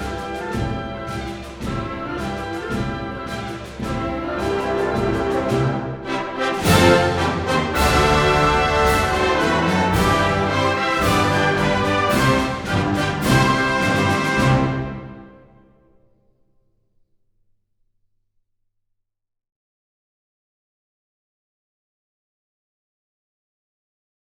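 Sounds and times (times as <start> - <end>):
national anthem: 0.0 - 15.8.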